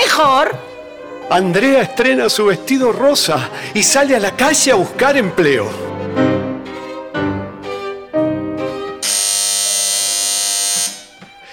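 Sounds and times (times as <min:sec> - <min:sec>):
speech: 0:00.2 - 0:06.4
doorbell ringing: 0:09.0 - 0:11.1.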